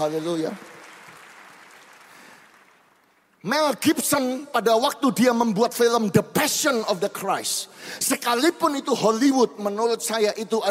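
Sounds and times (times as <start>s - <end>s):
speech: 0.0s - 0.7s, 3.4s - 10.6s
audience applauding: 0.0s - 3.4s.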